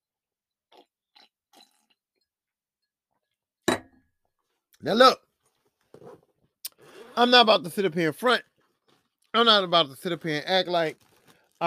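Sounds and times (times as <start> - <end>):
person sipping a drink: 0.7 - 2.0, 6.6 - 7.2
speech: 4.8 - 5.2, 7.2 - 8.5, 9.3 - 11.6.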